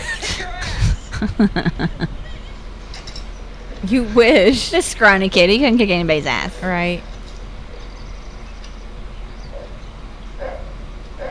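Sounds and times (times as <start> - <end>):
laughter: 0.0 - 2.4, 3.8 - 7.0
low hum: 0.0 - 10.6
speech: 1.2 - 2.3, 3.8 - 7.1
dog barking: 10.4 - 11.2.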